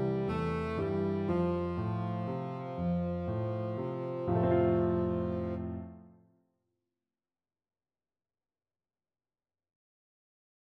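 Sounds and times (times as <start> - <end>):
tenor saxophone: 0.0 - 5.8.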